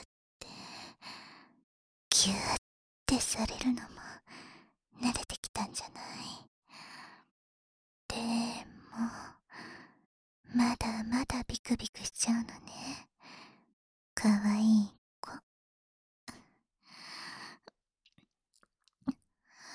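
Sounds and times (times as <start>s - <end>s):
whispering in the ear: 2.1s - 4.3s, 5.0s - 6.5s, 10.5s - 13.1s, 14.2s - 15.4s.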